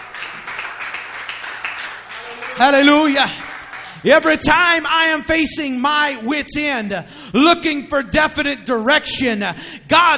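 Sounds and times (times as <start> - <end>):
congregation clapping hands in praise during a worship service: 0.0 - 4.8
speech: 2.6 - 3.4, 4.0 - 10.1.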